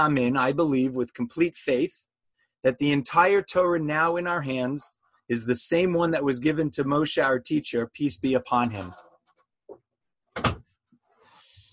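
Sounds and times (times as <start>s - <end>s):
speech: 0.0s - 9.0s
door being closed: 10.3s - 10.8s.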